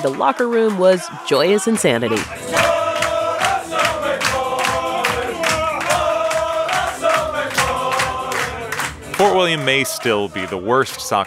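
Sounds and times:
speech: 0.0 - 2.7, 9.3 - 11.2
football fans cheering: 0.0 - 11.2.

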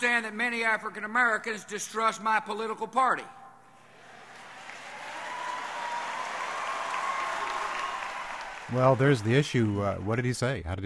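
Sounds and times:
speech: 0.0 - 3.4, 8.7 - 10.8
audience applause at a political speech: 4.1 - 10.4.

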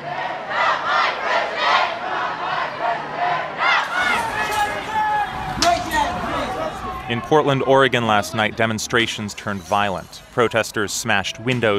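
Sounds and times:
large crowd of protesters chanting: 0.0 - 11.5
shouting and sharp cries: 0.5 - 7.3
speech: 7.1 - 11.7.

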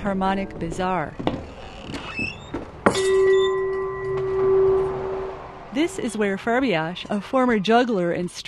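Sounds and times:
speech: 0.0 - 1.3, 5.7 - 8.4
chime made from found objects ringing: 2.9 - 6.6.

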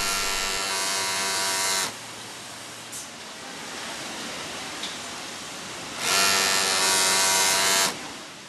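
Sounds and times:
sewing machines buzzing in a factory: 0.0 - 1.9, 6.0 - 8.0
quieter mechanical hum and clatter in a factory: 0.0 - 8.4.

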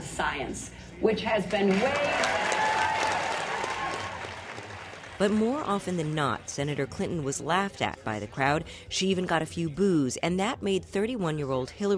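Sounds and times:
speech: 0.2 - 2.6, 5.2 - 11.9
audience applause at a Hillary Clinton speech: 1.7 - 6.1.

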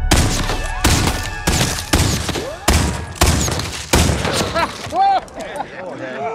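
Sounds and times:
gunfire in a gunfight scene from The Magnificent Seven: 0.1 - 4.9
laughter: 4.2 - 6.3.

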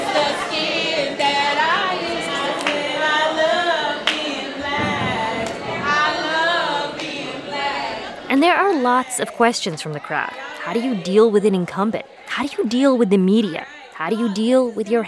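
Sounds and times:
group singing a spontaneous song: 0.0 - 8.4
speech: 8.4 - 15.0.

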